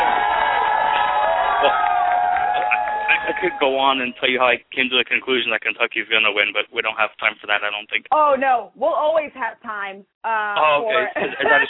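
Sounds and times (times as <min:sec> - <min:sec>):
laughter: 0:00.0 - 0:03.6, 0:10.6 - 0:11.6
audience cheering with whoops and shouts: 0:00.0 - 0:04.4
speech: 0:01.6 - 0:01.8, 0:03.4 - 0:11.6.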